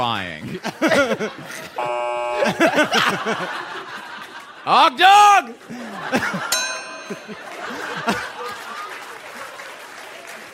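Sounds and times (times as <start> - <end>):
speech: 0.0 - 3.9, 4.6 - 8.3
laughter: 0.4 - 10.5
buzzer sound effect: 1.8 - 3.0.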